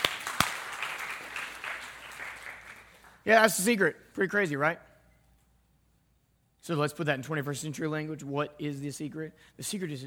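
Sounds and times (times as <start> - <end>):
audience applause: 0.0 - 3.2
speech: 3.2 - 4.9, 6.7 - 10.0.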